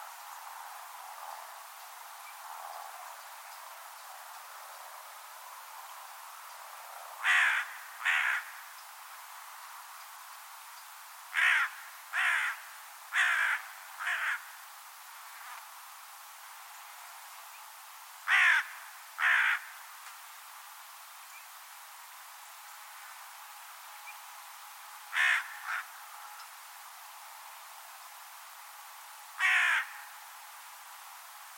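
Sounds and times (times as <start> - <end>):
light hiss: 0.0 - 31.5
bird cawing: 7.2 - 8.7, 11.3 - 14.6, 18.3 - 19.8, 25.1 - 26.0, 29.4 - 30.2.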